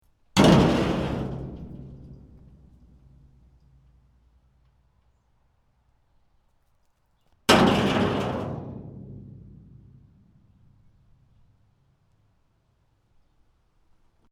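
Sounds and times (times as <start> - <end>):
cement chunks in a dumpster: 0.4 - 3.4, 7.5 - 10.2.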